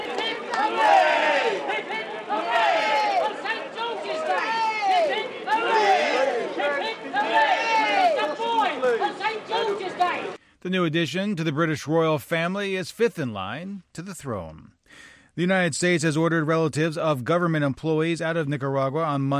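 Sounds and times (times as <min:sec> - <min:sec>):
crowd of Londoners cheering at news of a royal birth: 0:00.0 - 0:10.4
many excited shouting voices: 0:00.0 - 0:10.4
speech: 0:10.7 - 0:19.3.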